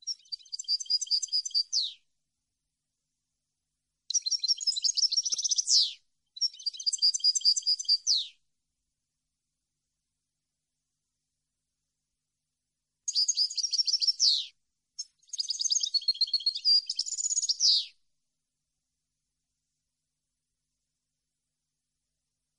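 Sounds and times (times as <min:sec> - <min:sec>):
European goldfinch twittering song: 0:00.0 - 0:02.0, 0:04.1 - 0:08.3, 0:13.1 - 0:17.9.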